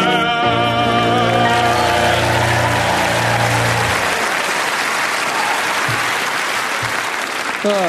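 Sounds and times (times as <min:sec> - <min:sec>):
held sung and musical tones: 0:00.0 - 0:04.0
crowd clapping along as a song ends: 0:01.3 - 0:07.8.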